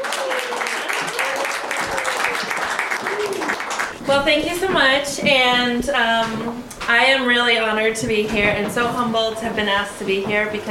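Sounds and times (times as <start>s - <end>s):
audience applause: 0.0s - 4.1s
speech: 4.1s - 10.6s.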